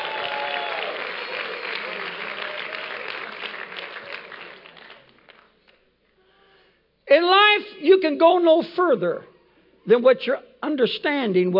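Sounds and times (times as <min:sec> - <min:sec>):
audience applause: 0:00.0 - 0:05.5
speech: 0:07.1 - 0:11.5.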